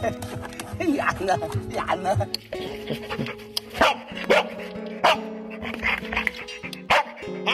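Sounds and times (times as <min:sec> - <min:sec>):
speech: 0:00.0 - 0:04.7
black Labrador search dog barking: 0:02.9 - 0:07.5.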